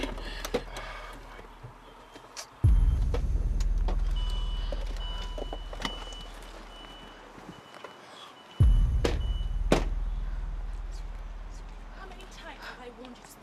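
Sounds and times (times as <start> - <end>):
car being parked: 0.0 - 13.4.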